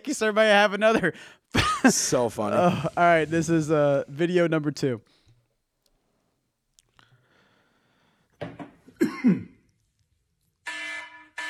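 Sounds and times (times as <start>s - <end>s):
speech: 0.0s - 5.2s
person coughing: 1.6s - 2.9s, 9.0s - 9.6s.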